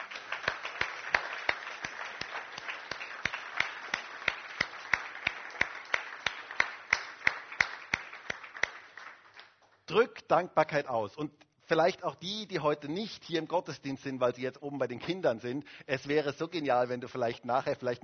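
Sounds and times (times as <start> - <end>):
audience applause: 0.0 - 9.7
speech: 10.0 - 18.0.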